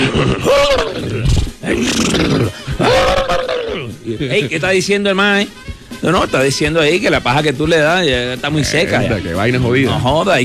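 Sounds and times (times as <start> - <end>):
man imitating horses whinnying and snorting: 0.0 - 4.0
speech: 4.2 - 10.4.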